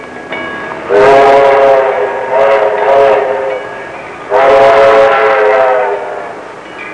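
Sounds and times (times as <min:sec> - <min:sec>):
train whistle: 0:00.9 - 0:03.7, 0:04.3 - 0:06.4.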